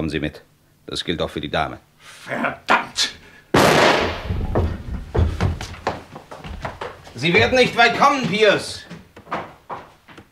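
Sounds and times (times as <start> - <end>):
speech: 0.0 - 3.2, 7.2 - 9.4
loud gunshot fired at an inspector: 3.6 - 4.6
quiet irregular thumps and knocks: 4.2 - 10.2.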